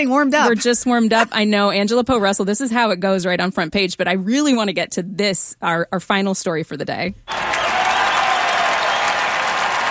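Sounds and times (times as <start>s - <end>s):
speech: 0.0s - 7.5s
audience applause: 7.3s - 9.8s.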